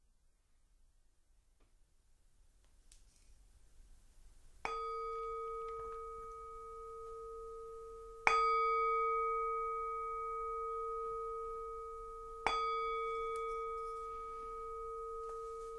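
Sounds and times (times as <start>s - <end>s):
singing bell ringing: 4.7s - 15.7s.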